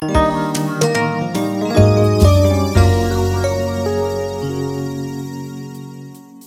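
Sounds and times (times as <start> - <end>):
minigame over jingle: 0.0 - 6.2.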